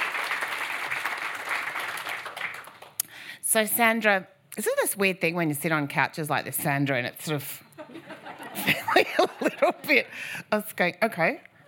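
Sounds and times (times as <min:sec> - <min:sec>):
audience applause greeting a guest for an on-stage couch interview: 0:00.0 - 0:03.0
speech: 0:03.5 - 0:08.0, 0:08.6 - 0:11.5
laughter: 0:07.8 - 0:10.1.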